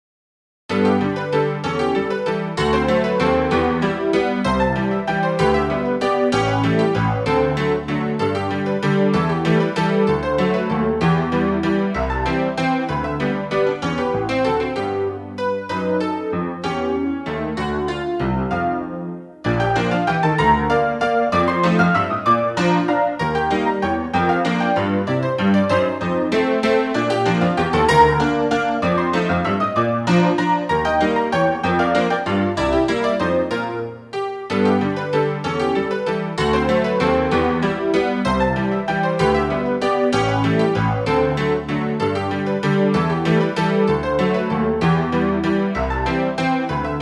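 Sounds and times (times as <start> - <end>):
player piano: 0.7 - 47.0.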